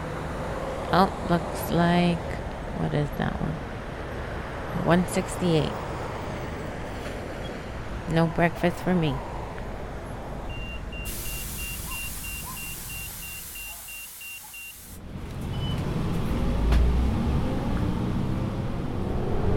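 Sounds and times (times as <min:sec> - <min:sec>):
city bus engine rumble: 0:00.0 - 0:19.1
speech: 0:00.9 - 0:03.7, 0:04.7 - 0:05.9, 0:08.1 - 0:09.3
high electronic beeps: 0:10.5 - 0:15.0.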